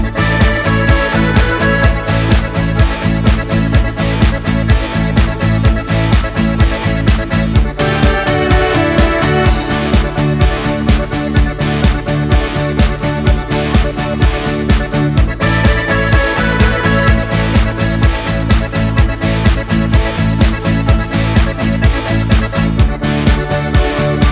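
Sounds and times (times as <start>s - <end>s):
karaoke backing track in D major without choir: 0.0s - 24.3s.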